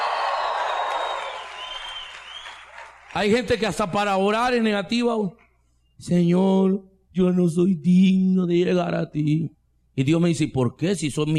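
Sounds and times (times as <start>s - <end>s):
audience shouting and cheering for joy: 0.0s - 3.3s
clapping: 0.0s - 3.8s
speech: 3.1s - 5.4s, 6.0s - 11.3s.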